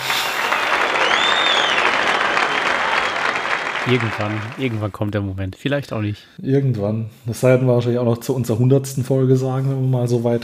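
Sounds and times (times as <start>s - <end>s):
applause: 0.0s - 5.0s
speech: 3.9s - 10.4s.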